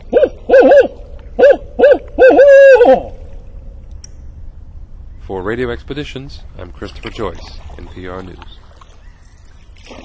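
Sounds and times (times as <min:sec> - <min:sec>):
barred owl hooting: 0:00.1 - 0:03.2
speech: 0:05.4 - 0:08.6.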